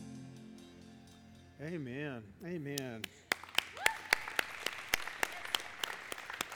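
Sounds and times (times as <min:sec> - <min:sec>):
speech: 0:01.7 - 0:03.2
audience clapping in church: 0:02.7 - 0:06.5.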